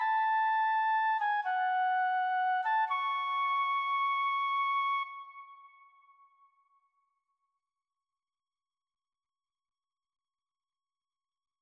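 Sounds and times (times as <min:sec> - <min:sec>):
flute: 0:00.0 - 0:06.5.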